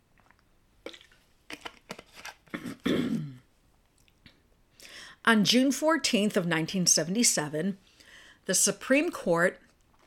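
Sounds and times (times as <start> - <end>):
person sipping a drink of water: 0.0 - 1.6
speech: 5.3 - 7.9, 8.5 - 9.6.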